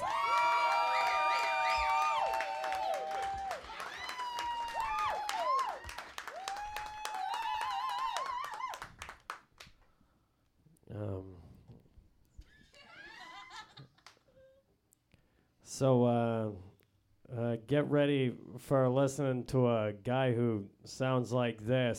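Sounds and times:
audience applauding for comedian: 0:00.0 - 0:09.7
laughter: 0:12.6 - 0:14.3
speech: 0:15.8 - 0:16.7, 0:17.3 - 0:21.9.

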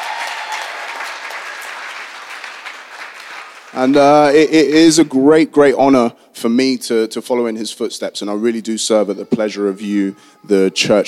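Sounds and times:
audience applauding: 0:00.0 - 0:04.4
speech: 0:03.7 - 0:11.0.

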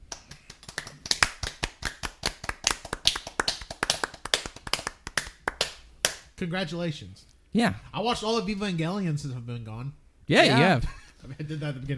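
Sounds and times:
applause: 0:00.3 - 0:06.2
speech: 0:06.4 - 0:11.9.

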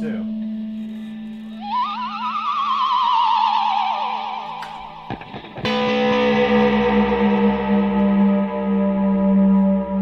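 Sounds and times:
guitar effects tractor beam sweeps and drone: 0:01.5 - 0:09.9
low hum: 0:02.8 - 0:09.9.

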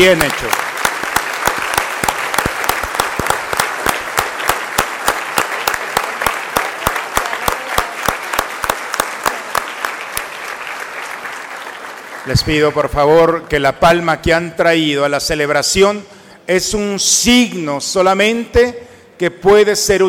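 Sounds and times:
speech: 0:00.0 - 0:00.6, 0:12.3 - 0:20.0
group of people applauding: 0:00.0 - 0:13.4.

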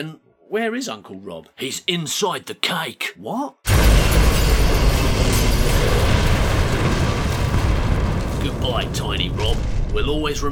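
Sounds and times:
speech: 0:00.0 - 0:06.1, 0:08.4 - 0:10.4
spaceship exploding in the distance: 0:03.7 - 0:10.4.

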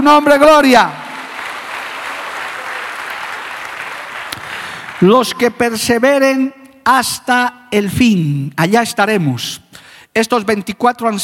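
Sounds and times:
speech: 0:00.0 - 0:01.0, 0:05.0 - 0:11.2
audience applause: 0:01.1 - 0:05.2.

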